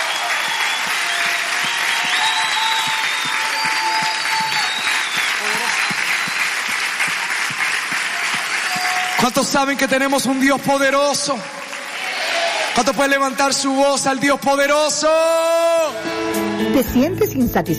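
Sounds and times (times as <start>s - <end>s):
audience applause: 0.0s - 14.1s
speech: 9.2s - 11.6s, 12.8s - 17.7s.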